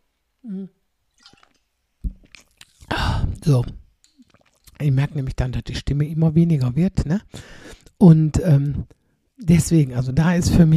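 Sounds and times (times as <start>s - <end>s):
speech: 0.4s - 0.8s, 3.5s - 3.8s, 4.8s - 10.7s
person sipping a drink: 0.4s - 4.8s.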